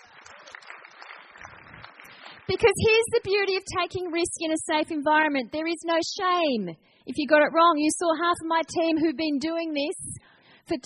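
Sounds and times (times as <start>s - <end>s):
audience clapping: 0.0s - 3.1s
speech: 2.5s - 10.1s, 10.7s - 10.8s.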